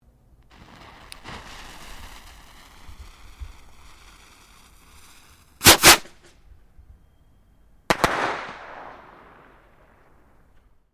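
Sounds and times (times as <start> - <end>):
domestic fireworks skyrocket detonating: 0.5 - 6.3, 7.9 - 10.2
domestic fireworks skyrocket double launch: 0.5 - 6.3.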